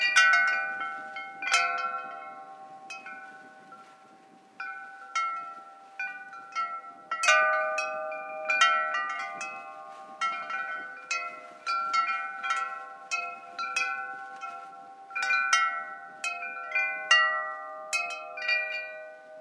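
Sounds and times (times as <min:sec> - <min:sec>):
wind chimes: 0:00.0 - 0:19.3.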